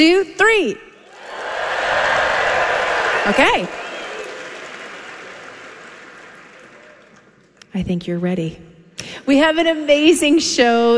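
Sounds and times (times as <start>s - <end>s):
speech: 0.0s - 0.9s, 3.2s - 3.8s, 7.8s - 10.9s
large audience clapping: 1.1s - 7.6s.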